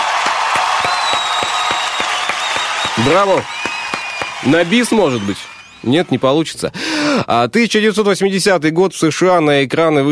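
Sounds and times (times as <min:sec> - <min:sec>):
audience applause: 0:00.0 - 0:06.5
speech: 0:03.0 - 0:03.6, 0:04.4 - 0:10.0.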